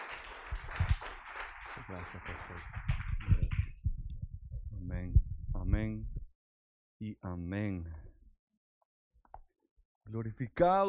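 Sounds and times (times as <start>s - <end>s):
group of people applauding: 0.0s - 3.8s
speech: 1.8s - 3.0s, 4.9s - 6.2s, 7.0s - 8.0s, 10.1s - 10.8s.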